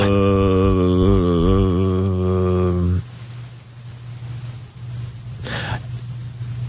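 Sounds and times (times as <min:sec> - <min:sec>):
person groaning long: 0:00.0 - 0:03.0.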